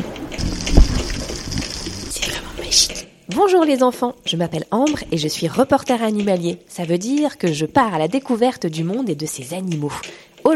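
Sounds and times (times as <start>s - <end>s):
underwater dive water splash: 0.0s - 2.2s
speech: 2.8s - 10.5s.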